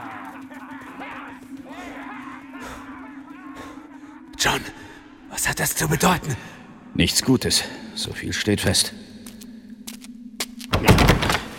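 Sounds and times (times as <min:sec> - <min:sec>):
speech: 0:04.5 - 0:04.8, 0:05.4 - 0:09.0
door shut hard and blocked: 0:10.7 - 0:11.5.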